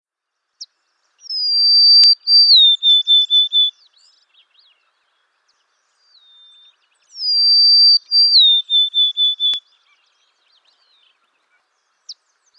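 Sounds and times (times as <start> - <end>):
Golden-crowned sparrow song with clear high whistle and short repeated notes: 1.2 - 4.8, 5.9 - 11.3.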